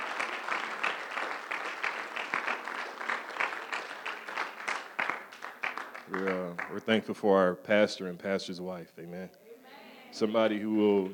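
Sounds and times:
audience hand clapping: 0:00.0 - 0:07.0
speech: 0:06.1 - 0:09.4, 0:10.2 - 0:11.1.

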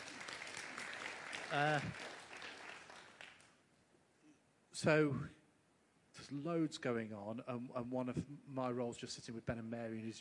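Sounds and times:
audience applause: 0:00.0 - 0:03.6
speech: 0:01.5 - 0:02.1, 0:04.8 - 0:05.4, 0:06.2 - 0:10.1.

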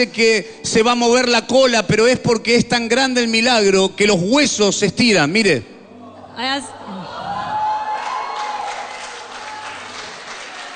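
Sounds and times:
speech: 0:00.0 - 0:05.7, 0:06.4 - 0:06.8
audience applause: 0:07.3 - 0:10.7.

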